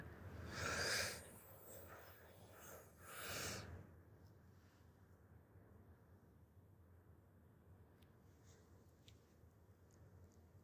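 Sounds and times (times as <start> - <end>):
deep breath in and out during a guided breathing exercise: 0.4 - 3.8.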